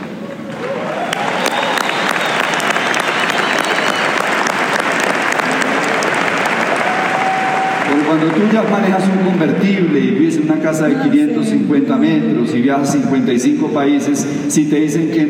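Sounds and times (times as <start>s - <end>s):
audience applause: 0.1s - 9.6s
speech: 8.2s - 15.2s.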